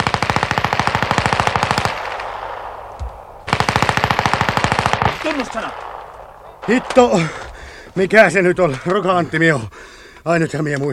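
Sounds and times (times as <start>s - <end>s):
bursts of automatic gunfire: 0.0s - 7.5s
speech: 5.3s - 5.9s, 6.6s - 7.4s, 8.0s - 10.9s.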